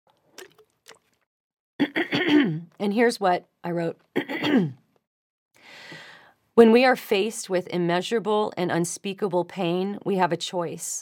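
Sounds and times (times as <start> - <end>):
person sipping water: 0.2 - 1.2
speech: 1.8 - 4.8, 6.6 - 11.0.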